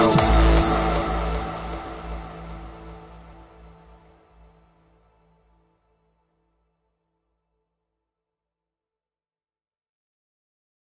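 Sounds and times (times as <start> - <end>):
hardstyle music: 0.0 - 4.2.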